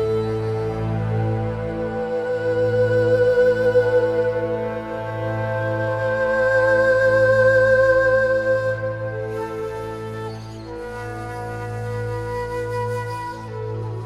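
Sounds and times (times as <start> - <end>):
ambient music: 0.0 - 14.0.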